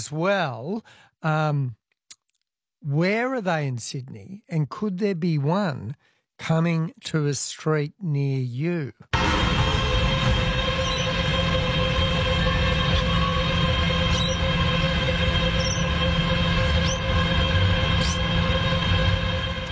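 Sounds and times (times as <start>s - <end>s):
speech: 0.0s - 1.8s, 2.8s - 9.4s
data centre noise: 9.2s - 19.6s.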